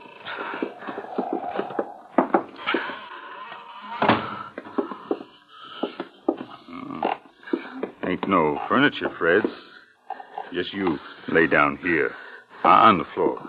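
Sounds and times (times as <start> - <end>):
old wooden door creaking open: 0.4 - 5.2
speech: 8.3 - 9.7, 10.5 - 13.4.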